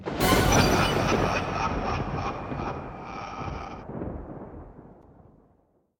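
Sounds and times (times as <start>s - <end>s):
level finish jingle: 0.0s - 3.0s
laughter: 0.2s - 3.8s.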